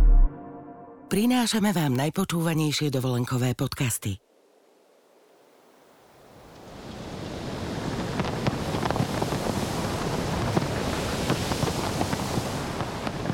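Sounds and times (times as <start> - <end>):
speech: 1.1 - 4.2
sea breeze gusting across the shore: 4.2 - 13.3
surf washing: 5.4 - 13.3.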